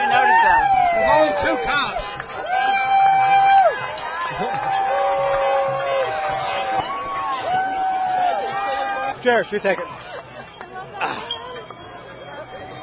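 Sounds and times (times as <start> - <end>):
large outdoor street crowd of about 700 people roaring and chattering: 0.0 - 9.2
crowd shouts and whoops: 0.0 - 12.8
speech: 9.2 - 9.9
laughter: 9.8 - 11.7.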